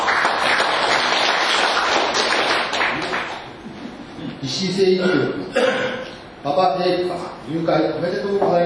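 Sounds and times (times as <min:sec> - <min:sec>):
applause: 0:00.0 - 0:03.5
speech: 0:04.4 - 0:08.6.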